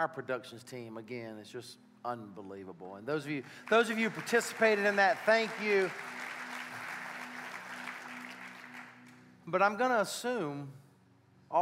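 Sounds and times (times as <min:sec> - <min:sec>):
speech: 0:00.0 - 0:06.3, 0:09.5 - 0:10.8
audience clapping: 0:03.4 - 0:09.3.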